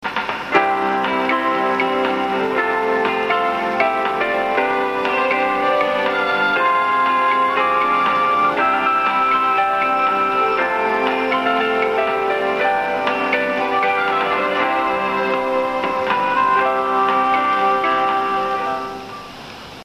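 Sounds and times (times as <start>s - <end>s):
bus chime: 0.6s - 19.8s.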